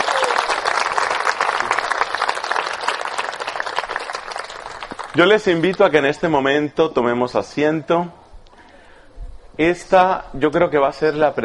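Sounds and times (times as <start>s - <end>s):
audience applause: 0.0s - 5.8s
speech: 5.2s - 8.2s, 9.6s - 11.4s.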